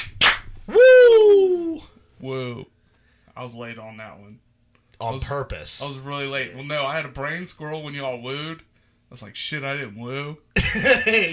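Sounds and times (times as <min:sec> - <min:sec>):
hand claps: 0:00.0 - 0:00.6
speech: 0:02.2 - 0:02.8, 0:03.4 - 0:11.3.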